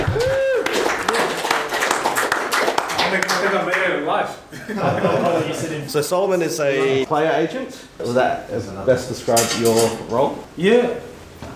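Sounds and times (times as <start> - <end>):
audience applause: 0.0 - 4.0
speech: 3.2 - 11.1
laughter: 4.5 - 5.9.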